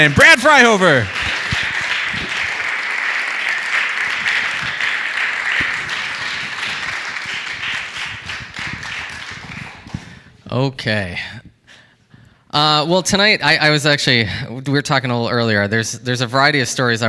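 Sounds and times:
speech: 0.0s - 1.4s, 10.5s - 11.4s, 12.5s - 17.0s
audience applause: 0.0s - 10.1s.

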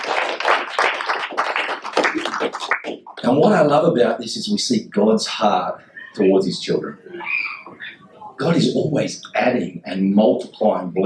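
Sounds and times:
audience hand clapping: 0.0s - 3.3s
speech: 2.4s - 7.4s, 8.4s - 11.0s.

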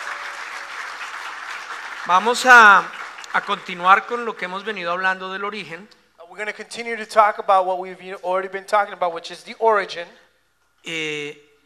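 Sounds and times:
audience applause: 0.0s - 4.6s
speech: 2.0s - 10.2s, 10.8s - 11.5s.

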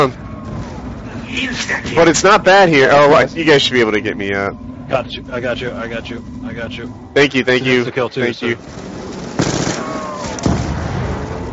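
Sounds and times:
speech: 0.0s - 0.2s, 1.3s - 9.0s
thin whining tone in a zombie video game: 0.0s - 10.5s
burning zombies exploding in a zombie video game: 8.6s - 11.5s.

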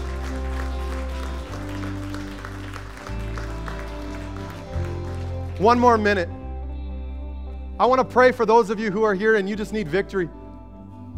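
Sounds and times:
audience applause: 0.0s - 6.0s
speech: 5.6s - 6.4s, 7.8s - 10.4s.

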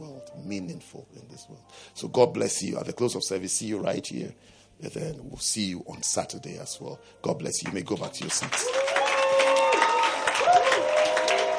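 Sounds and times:
speech: 0.5s - 9.2s
audience clapping: 7.6s - 11.5s.

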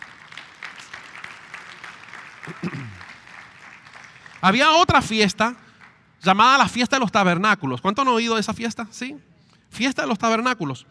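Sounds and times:
audience applause: 0.0s - 4.5s
speech: 2.5s - 3.0s, 4.4s - 5.6s, 6.2s - 10.8s.

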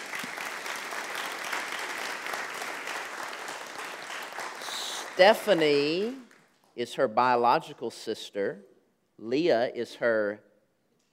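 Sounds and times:
audience applause: 0.0s - 6.5s
speech: 5.2s - 10.5s.

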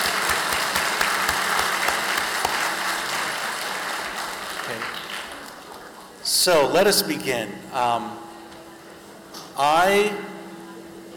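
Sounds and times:
crowd clapping: 0.0s - 5.7s
speech: 6.4s - 8.3s, 9.6s - 10.3s.

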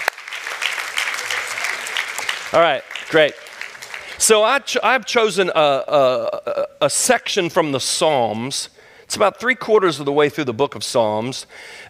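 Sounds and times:
audience applause: 0.0s - 4.6s
speech: 2.5s - 3.4s, 4.2s - 11.8s.

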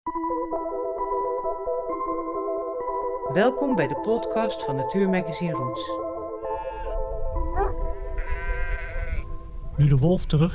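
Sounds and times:
speech: 0.1s - 2.3s, 3.3s - 6.1s, 9.8s - 10.5s
sheep bleating: 6.4s - 7.0s, 7.6s - 9.4s.

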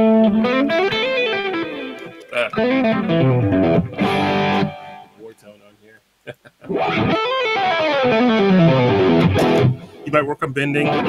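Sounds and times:
speech: 0.0s - 0.9s, 10.1s - 11.0s
electric guitar playing hammer-ons and pull-offs: 0.0s - 5.2s, 6.6s - 10.0s, 10.8s - 11.0s.

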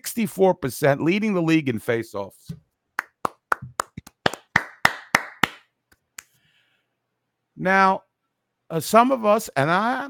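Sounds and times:
speech: 0.1s - 2.6s, 7.6s - 8.1s, 8.7s - 10.0s
audience applause: 3.2s - 5.6s.

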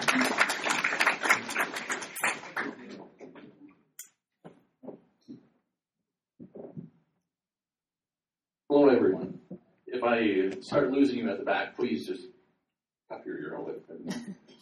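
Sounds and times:
audience applause: 0.0s - 3.0s
speech: 10.1s - 12.3s.

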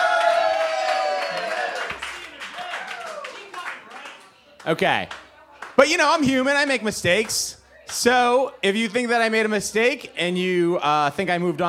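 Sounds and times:
audience cheering: 0.0s - 3.6s
speech: 4.6s - 5.2s, 5.8s - 11.6s.

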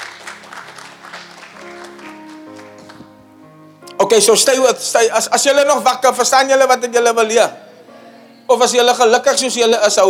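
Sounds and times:
audience clapping: 0.0s - 3.3s
sustained shifting keyboard chords: 0.0s - 10.0s
speech: 4.0s - 7.6s, 8.5s - 10.0s.

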